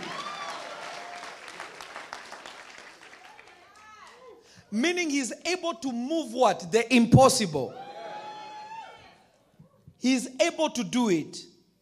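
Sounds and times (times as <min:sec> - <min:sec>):
audience clapping: 0:00.0 - 0:04.3
speech: 0:04.7 - 0:07.8, 0:10.0 - 0:11.5.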